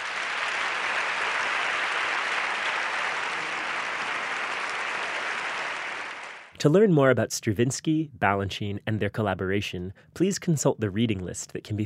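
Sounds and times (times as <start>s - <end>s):
audience applause: 0.0s - 6.6s
speech: 6.6s - 11.8s.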